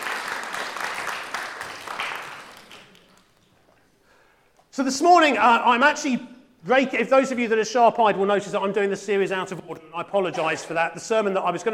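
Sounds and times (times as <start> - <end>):
audience applause: 0.0 - 3.4
speech: 4.8 - 11.7.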